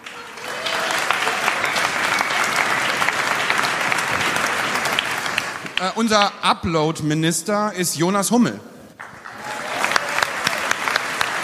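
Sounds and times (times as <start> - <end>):
audience applause: 0.0 - 6.4, 9.0 - 11.4
speech: 5.8 - 8.8.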